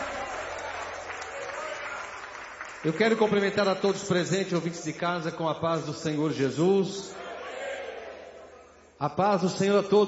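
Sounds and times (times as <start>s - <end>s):
audience clapping: 0.0s - 4.7s
speech: 2.8s - 7.2s, 9.0s - 10.0s.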